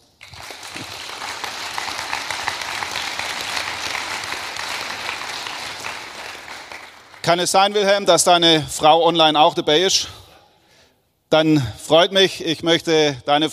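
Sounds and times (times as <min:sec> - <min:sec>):
audience applause: 0:00.0 - 0:07.8
speech: 0:07.3 - 0:10.2, 0:11.3 - 0:13.5.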